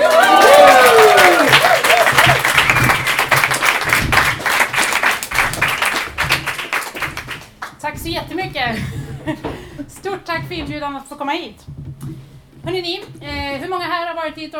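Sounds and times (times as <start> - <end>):
audience applause: 0.0 - 7.8
speech: 10.4 - 11.8, 12.7 - 14.5.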